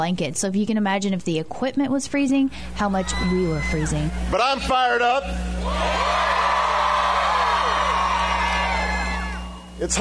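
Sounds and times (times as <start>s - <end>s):
speech: 0.0s - 6.6s, 9.8s - 9.9s
faint low electrical hum: 0.0s - 9.9s
crowd cheering and whooping: 3.0s - 4.2s, 5.6s - 9.8s.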